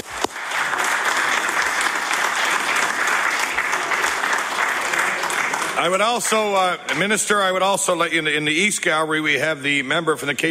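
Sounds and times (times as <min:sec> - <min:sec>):
members of a legislative House applauding: 0:00.0 - 0:07.6
speech: 0:05.8 - 0:10.4.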